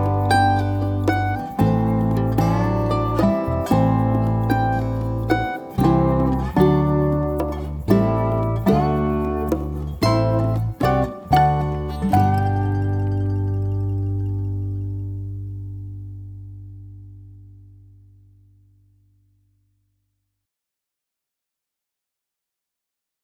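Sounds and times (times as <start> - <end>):
dobro playing shuffle blues: 0.0 - 17.5.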